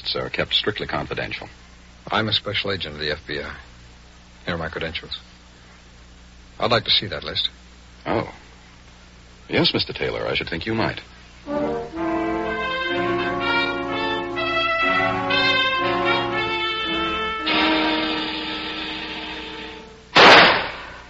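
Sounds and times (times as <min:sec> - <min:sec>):
speech: 0:00.1 - 0:03.7, 0:04.4 - 0:05.3, 0:06.6 - 0:08.4, 0:09.5 - 0:11.8
music: 0:11.4 - 0:20.2
pistol shot at target practice: 0:20.2 - 0:21.0.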